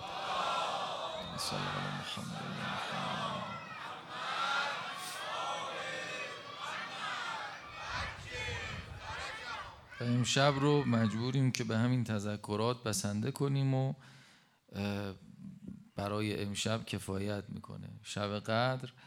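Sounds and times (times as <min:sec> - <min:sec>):
audience loudly reciting salawat: 0:00.0 - 0:11.2
speech: 0:01.4 - 0:03.5, 0:10.0 - 0:15.3, 0:16.0 - 0:19.0.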